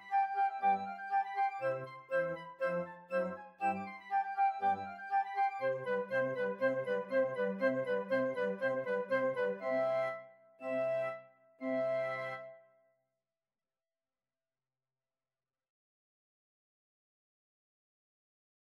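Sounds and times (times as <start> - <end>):
flute: 0.0 - 12.8.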